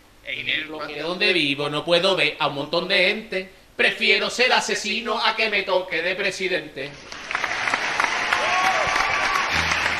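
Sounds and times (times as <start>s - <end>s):
speech: 0.2s - 7.2s
applause: 7.1s - 9.9s.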